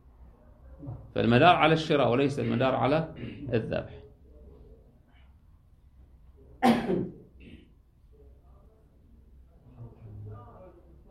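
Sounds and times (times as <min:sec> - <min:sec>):
speech: 0:00.8 - 0:04.0
person sneezing during an Islamic jurisprudence lecture: 0:06.6 - 0:07.6.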